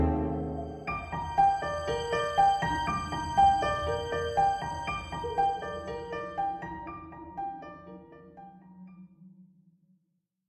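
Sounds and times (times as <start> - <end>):
haunted house suspense music: 0.0 - 6.1.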